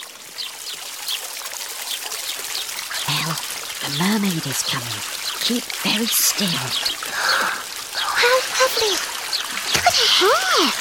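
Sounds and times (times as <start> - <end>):
water pouring into a jug: 0.0 - 10.7
speech: 3.3 - 7.6, 8.2 - 9.1, 9.8 - 10.7.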